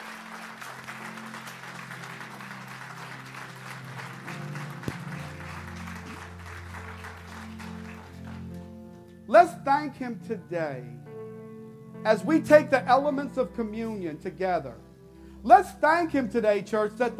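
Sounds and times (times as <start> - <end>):
audience clapping: 0.0 - 9.2
speech: 9.3 - 11.1, 12.0 - 14.8, 15.4 - 17.1.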